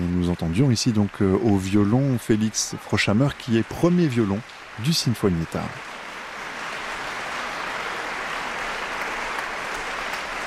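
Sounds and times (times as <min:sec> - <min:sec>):
warm audience applause after concert piece: 0:00.0 - 0:10.4
speech: 0:00.3 - 0:05.9.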